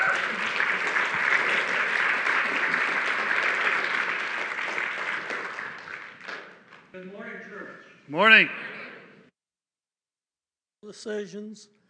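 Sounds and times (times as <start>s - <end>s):
church congregation applauding a guest speaker: 0.0s - 7.0s
speech: 8.1s - 8.6s, 10.9s - 11.8s.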